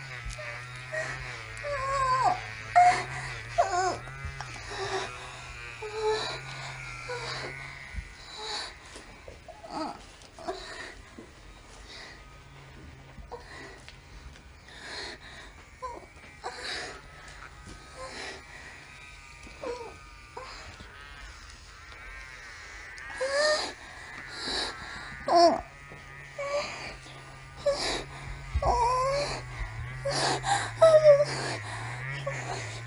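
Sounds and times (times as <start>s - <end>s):
woman moaning: 0.0s - 8.8s, 9.5s - 11.0s, 15.8s - 17.1s, 19.5s - 20.8s, 23.1s - 32.8s.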